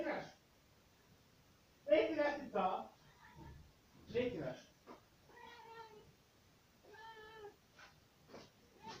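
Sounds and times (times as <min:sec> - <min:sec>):
speech: 0:00.2 - 0:00.4, 0:02.4 - 0:02.9
cat meowing: 0:05.3 - 0:06.1, 0:06.8 - 0:07.6, 0:08.7 - 0:08.9.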